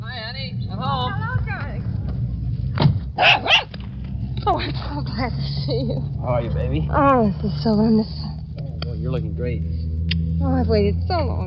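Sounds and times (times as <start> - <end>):
low steady hum: 0.0 - 11.4
dog barking in greeting at homecoming: 3.2 - 3.7
speech: 5.1 - 8.4, 9.1 - 9.8, 10.4 - 11.4.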